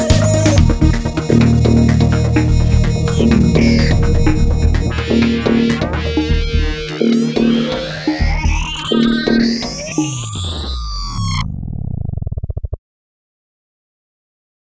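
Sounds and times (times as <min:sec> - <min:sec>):
trailer music: 0:00.0 - 0:11.4.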